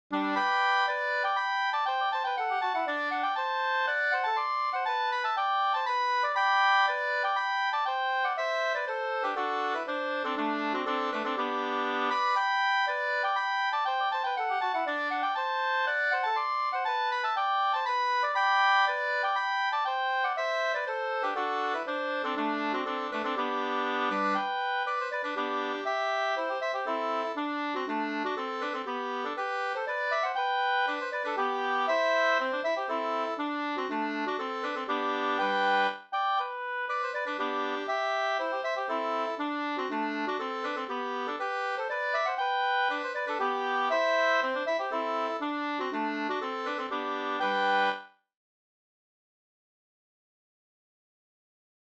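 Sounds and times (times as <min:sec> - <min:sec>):
hambo polska folk dance tune: 0:00.1 - 0:48.1.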